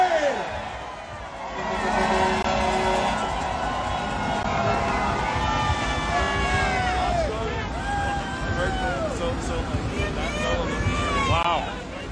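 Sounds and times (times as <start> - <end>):
crowd at the 2022 Canadian trucker convoy protest cheering: 0.0 - 9.3
crowd babble: 0.4 - 12.0.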